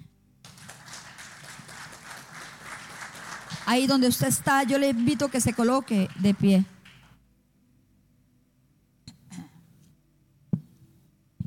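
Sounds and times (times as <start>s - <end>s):
audience applauding: 0.4s - 7.2s
speech: 3.7s - 6.8s.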